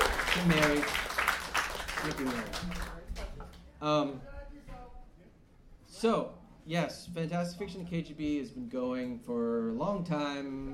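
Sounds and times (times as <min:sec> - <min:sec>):
room full of people applauding: 0:00.0 - 0:03.3
speech: 0:00.4 - 0:01.1, 0:02.0 - 0:05.0, 0:06.0 - 0:10.7.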